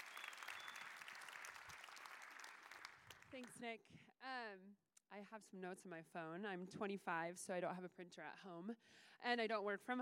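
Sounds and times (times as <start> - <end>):
audience applause: 0.0 - 3.3
speech: 3.3 - 10.0.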